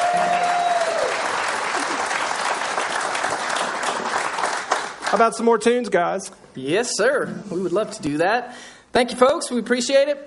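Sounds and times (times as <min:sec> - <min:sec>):
audience applause: 0:00.0 - 0:05.4
speech: 0:05.1 - 0:10.2.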